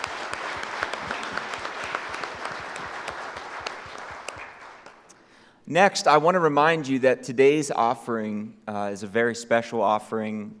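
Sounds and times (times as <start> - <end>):
crowd applauding: 0.0 - 5.2
speech: 5.7 - 10.5.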